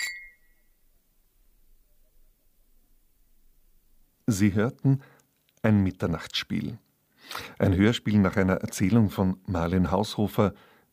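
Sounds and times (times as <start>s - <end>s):
glasses clinking in a toast: 0.0s - 0.5s
speech: 4.3s - 10.9s.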